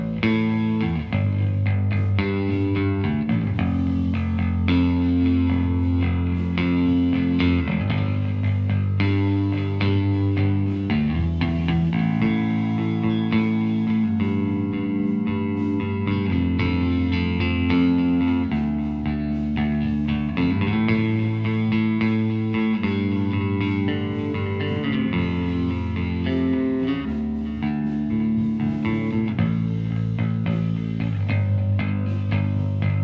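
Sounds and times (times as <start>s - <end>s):
bass through guitar amp recorded mono with M160 microphone: 0.0s - 33.0s.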